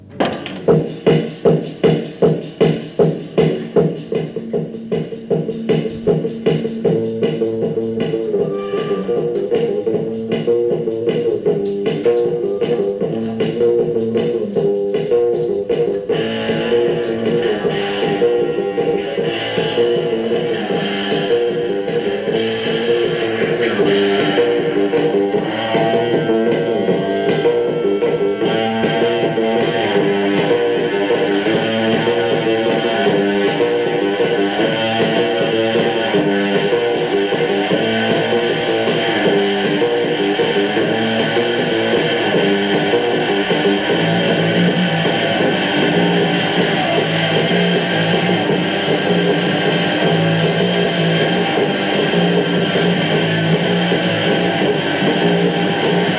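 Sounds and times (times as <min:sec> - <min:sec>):
instrumental music: 0:00.0 - 0:56.1.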